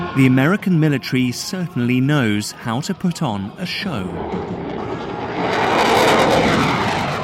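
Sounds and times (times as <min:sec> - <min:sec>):
speech: 0:00.2 - 0:04.6
F-22 Raptor fighter jets flying above the Seoul Aerospace and Defense Exhibition: 0:03.9 - 0:07.2.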